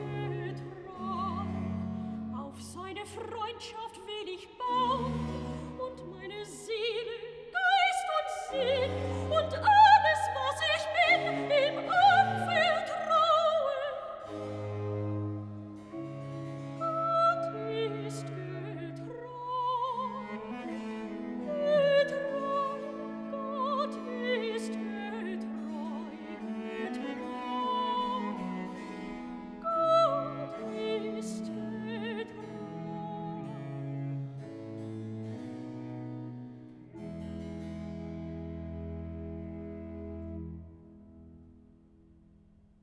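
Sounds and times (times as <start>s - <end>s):
soprano singing recitative: 0.0s - 34.1s.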